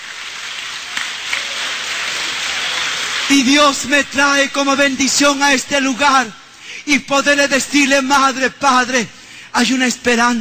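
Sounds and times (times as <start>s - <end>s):
crowd clapping: 0.0s - 4.2s
speech: 3.3s - 10.3s.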